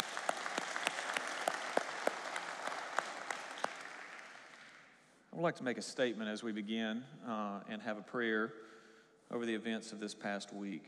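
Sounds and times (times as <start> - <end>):
audience applause at a public event in Montgomery: 0.0 - 4.9
speech: 5.4 - 10.8.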